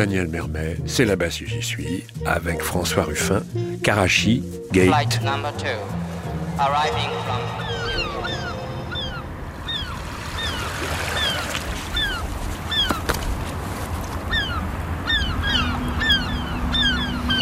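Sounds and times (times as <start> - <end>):
speech: 0.0 - 6.0, 6.6 - 7.7
seagulls calling overhead at a harbour: 4.8 - 17.4.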